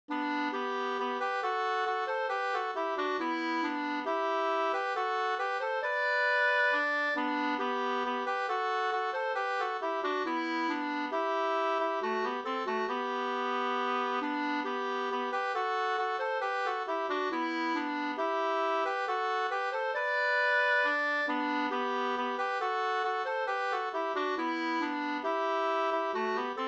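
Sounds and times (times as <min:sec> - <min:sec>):
folk tune in G major: 0:00.1 - 0:26.6.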